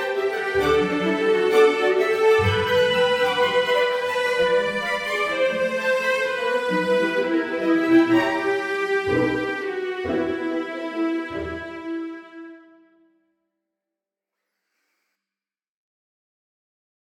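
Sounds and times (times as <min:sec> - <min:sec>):
strings: 0:00.0 - 0:12.8.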